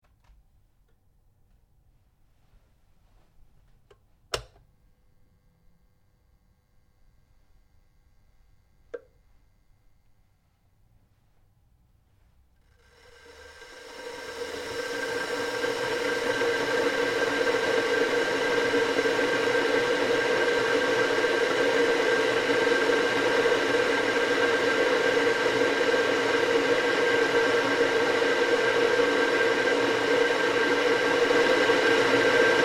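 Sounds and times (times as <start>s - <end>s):
domestic electric kettle boiling: 12.6s - 32.6s.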